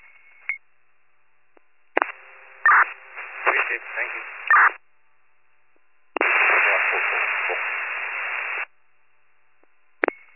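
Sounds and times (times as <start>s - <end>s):
radio static hiss: 2.0s - 4.8s, 6.2s - 8.7s.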